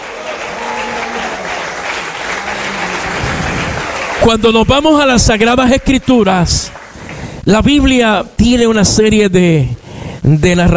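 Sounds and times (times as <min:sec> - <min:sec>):
audience applause: 0:00.0 - 0:07.4
speech: 0:04.2 - 0:06.8, 0:07.4 - 0:10.7.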